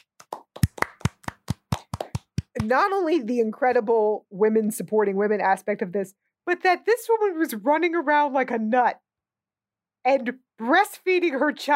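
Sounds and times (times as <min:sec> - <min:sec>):
applause: 0:00.0 - 0:02.8
speech: 0:02.6 - 0:09.0, 0:10.0 - 0:11.7.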